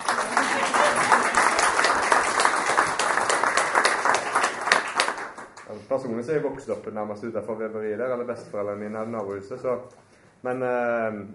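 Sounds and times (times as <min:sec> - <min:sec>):
audience applause: 0:00.0 - 0:05.7
speech: 0:06.0 - 0:11.3.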